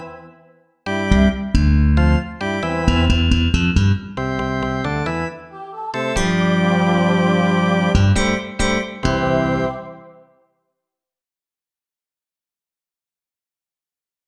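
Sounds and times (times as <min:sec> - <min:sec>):
melody: 0:00.9 - 0:05.3, 0:06.0 - 0:10.3.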